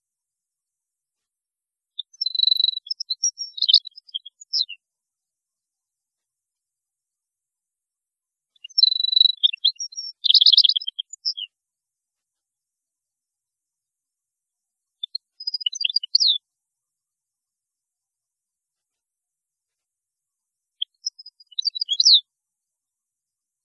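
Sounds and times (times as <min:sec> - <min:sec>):
European goldfinch song: 0:02.2 - 0:04.6, 0:08.7 - 0:11.4, 0:21.1 - 0:22.2.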